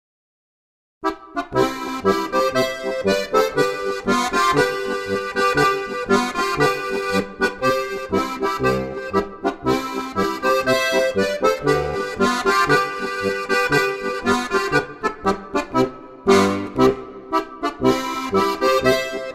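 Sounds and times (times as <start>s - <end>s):
polka music: 1.0s - 19.3s.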